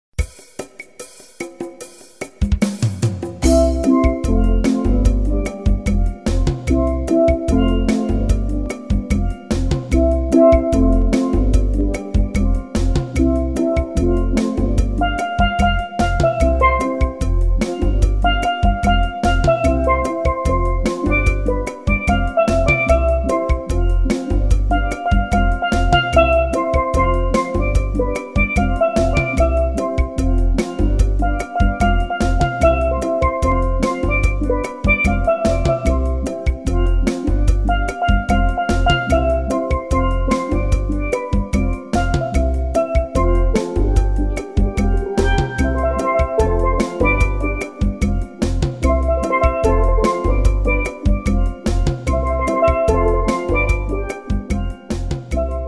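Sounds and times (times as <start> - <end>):
steel vibrations: 3.4 - 55.6.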